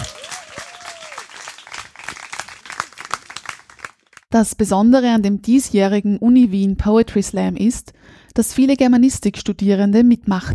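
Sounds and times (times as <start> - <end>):
audience applause: 0.0 - 4.2
speech: 4.3 - 10.5.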